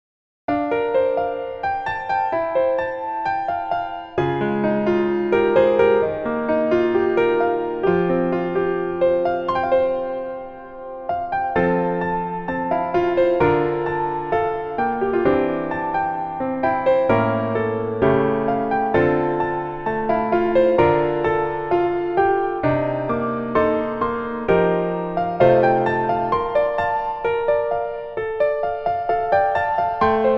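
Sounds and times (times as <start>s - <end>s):
piano melody in female key: 0.5s - 30.3s.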